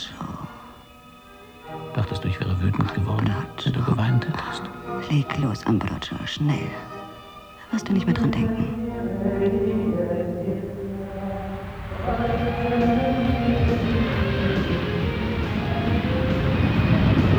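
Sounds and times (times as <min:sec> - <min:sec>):
jet aircraft engine: 0:00.0 - 0:17.3
speech: 0:05.1 - 0:06.9, 0:07.8 - 0:10.6, 0:12.1 - 0:14.8.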